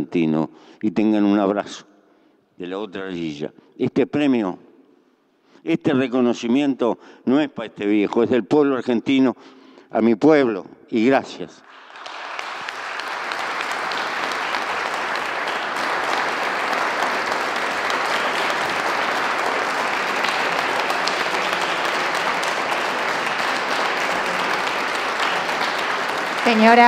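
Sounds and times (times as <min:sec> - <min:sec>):
speech: 0:00.0 - 0:01.9, 0:02.6 - 0:04.6, 0:05.6 - 0:12.2, 0:26.5 - 0:26.8
audience applause at ceremony end: 0:11.7 - 0:26.8.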